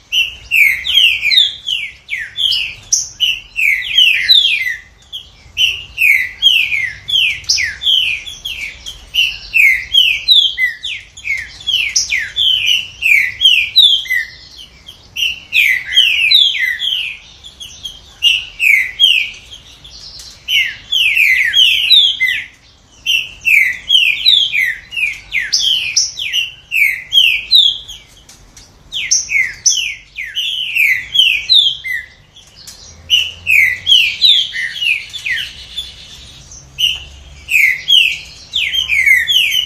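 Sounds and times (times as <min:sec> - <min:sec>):
green-winged saltator singing slurred falling whistles: 0:00.1 - 0:28.1, 0:28.9 - 0:32.5, 0:33.1 - 0:39.6.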